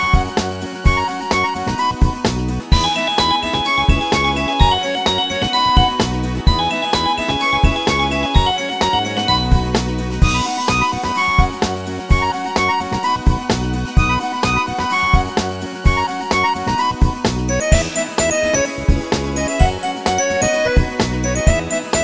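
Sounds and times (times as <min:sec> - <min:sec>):
instrumental folk song: 0:00.0 - 0:22.0.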